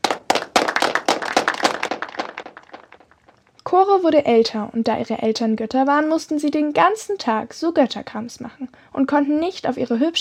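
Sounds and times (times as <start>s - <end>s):
applause: 0.0s - 3.4s
speech: 3.7s - 10.1s.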